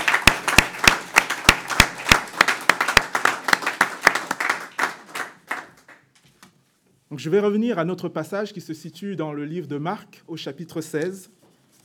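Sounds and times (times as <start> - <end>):
church congregation clapping: 0.0 - 6.2
speech: 7.1 - 11.4.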